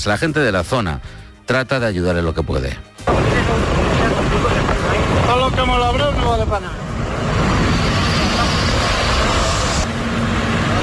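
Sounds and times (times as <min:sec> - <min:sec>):
speech: 0:00.0 - 0:03.9, 0:05.3 - 0:06.8
column of tractors advancing to cut firebreaks during a forest fire: 0:03.1 - 0:10.8.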